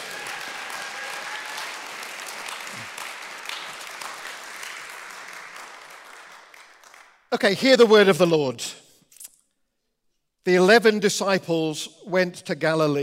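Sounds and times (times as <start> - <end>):
audience applause: 0.0 - 7.1
speech: 7.3 - 8.8, 10.4 - 13.0.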